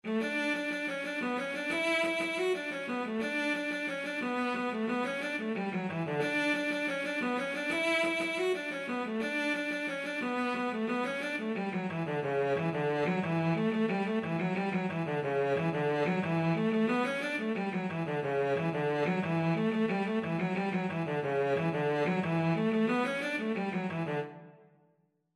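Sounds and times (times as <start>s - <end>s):
violoncello: 0.0s - 24.6s.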